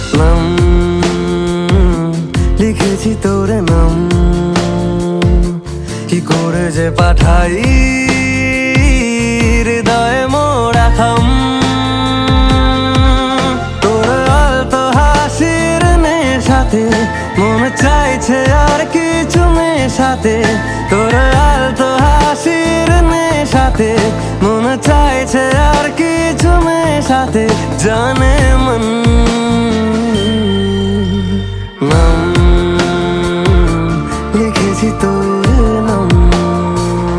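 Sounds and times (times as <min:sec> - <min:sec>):
romantic Bengali song: 0:00.0 - 0:37.1.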